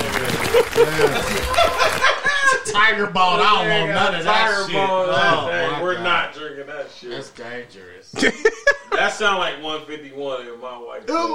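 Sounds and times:
small group clapping: 0.0 - 2.6
people chuckling: 0.0 - 2.7, 8.2 - 9.2
speech: 0.6 - 2.0, 2.7 - 11.3.

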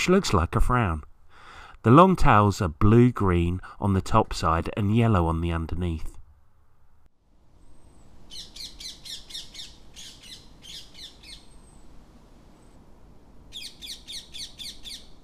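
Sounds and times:
speech: 0.0 - 1.1, 1.8 - 6.2
ring-necked parakeet shrill screeching call: 8.3 - 11.5, 13.5 - 15.1.

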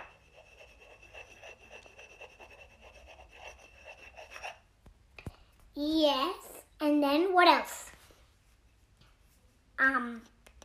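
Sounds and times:
pen writing on paper: 0.0 - 4.6
speech: 5.8 - 7.8.

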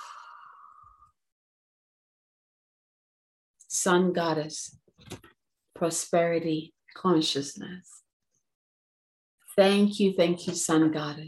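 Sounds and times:
deep breath exhale: 0.0 - 1.0
speech: 3.7 - 5.2, 5.8 - 8.0, 9.6 - 11.2.

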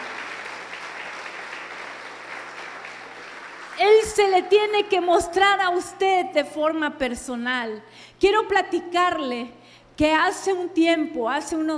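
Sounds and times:
loud audience applause: 0.0 - 4.2
speech: 4.0 - 11.7.

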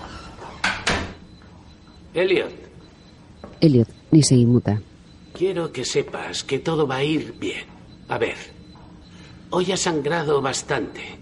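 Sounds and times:
door closing: 0.0 - 1.2
speech: 2.1 - 2.7, 3.6 - 8.6, 9.5 - 11.1.

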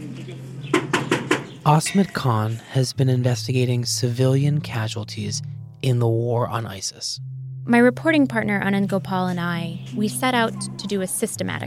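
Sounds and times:
knocking on a door: 0.7 - 1.6
speech: 1.6 - 11.6.

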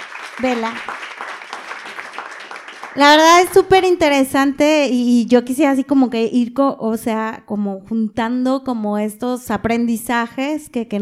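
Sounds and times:
audience applause: 0.0 - 3.6
speech: 0.4 - 1.3, 3.0 - 11.0.

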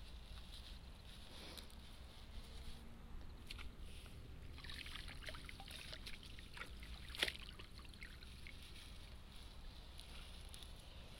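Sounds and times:
rustling of rice seedlings: 0.0 - 4.6, 5.5 - 11.1
splashes and drips from flooded nursery bed: 3.4 - 3.8, 4.4 - 9.2.

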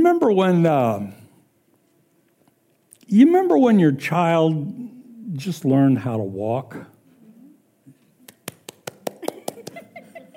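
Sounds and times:
speech: 0.0 - 1.2, 3.1 - 6.9
hands clapping: 8.2 - 10.0
laughter: 9.1 - 10.3.

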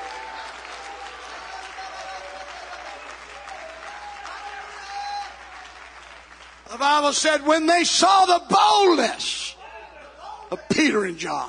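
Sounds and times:
audience clapping hands: 0.0 - 7.4
speech: 6.7 - 9.6, 10.5 - 11.4.

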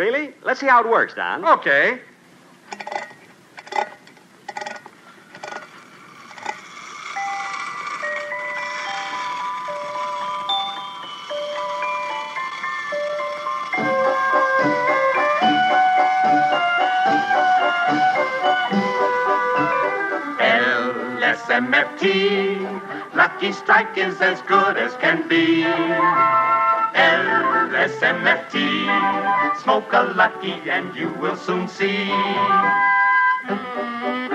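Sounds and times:
speech: 0.0 - 2.1, 2.7 - 2.9, 23.4 - 32.9, 33.5 - 34.2
wind-up toy merry-go-round clicks: 2.7 - 15.6
wind-up toy merry-go-round music-box tune: 6.4 - 30.8.

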